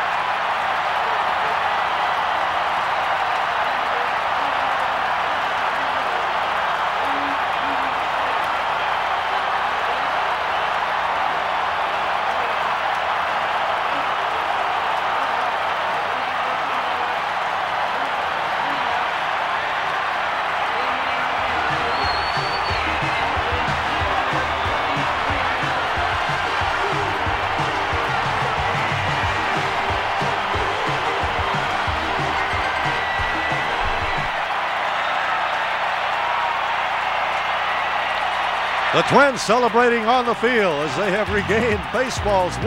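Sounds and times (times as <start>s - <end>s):
stadium crowd cheering: 0.0s - 42.6s
speech: 39.1s - 42.6s.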